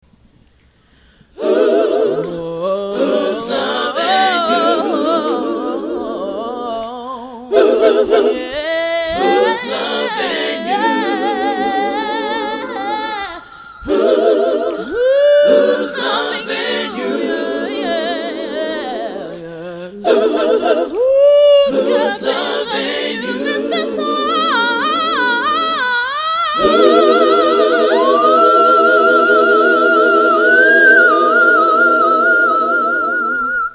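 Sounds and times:
a cappella singing: 0:01.3 - 0:33.7.

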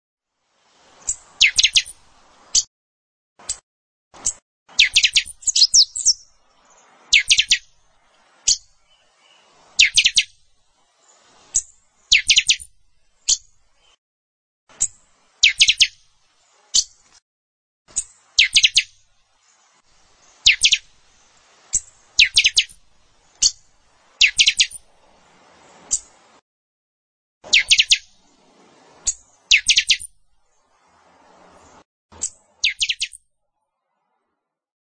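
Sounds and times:
a song: 0:01.0 - 0:02.7, 0:04.2 - 0:14.0, 0:14.7 - 0:17.2, 0:17.9 - 0:20.9, 0:21.7 - 0:26.2, 0:27.5 - 0:28.3, 0:29.0 - 0:30.9, 0:32.2 - 0:33.2.

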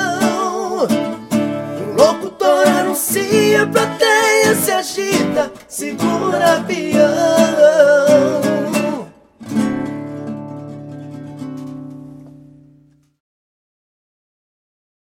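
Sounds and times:
rock and roll sertanejo music: 0:00.2 - 0:12.1.

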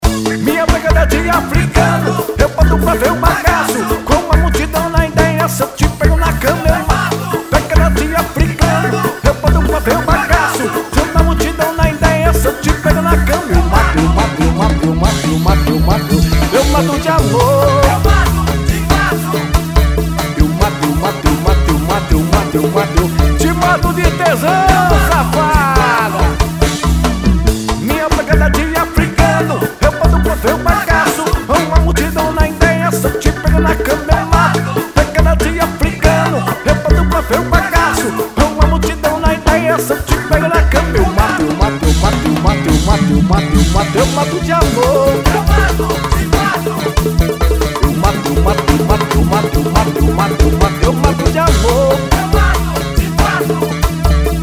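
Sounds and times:
samba band rehearsing: 0:00.0 - 0:54.4.

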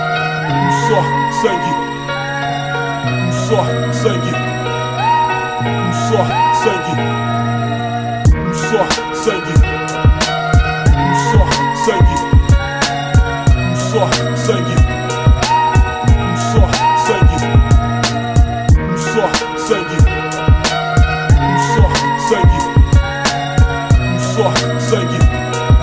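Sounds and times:
music beat: 0:00.2 - 0:25.8.

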